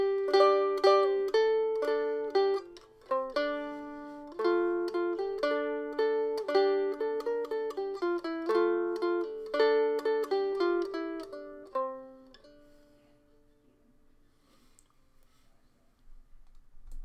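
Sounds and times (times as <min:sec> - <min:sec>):
gittern: 0:00.0 - 0:13.4.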